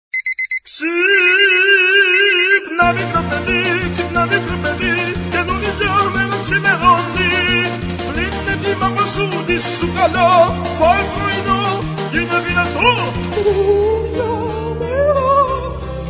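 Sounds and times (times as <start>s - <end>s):
man singing opera: 0.7s - 16.0s.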